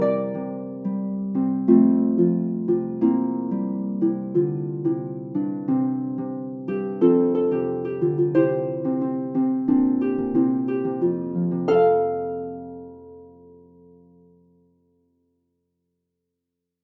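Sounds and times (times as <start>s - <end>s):
calypso Christmas MIDI tune: 0.0s - 13.3s.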